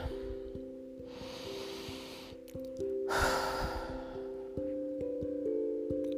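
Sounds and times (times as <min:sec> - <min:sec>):
slow deep breath in a relaxation exercise: 0:00.0 - 0:02.5, 0:03.1 - 0:04.6
soft sustained musical tone: 0:00.0 - 0:06.1.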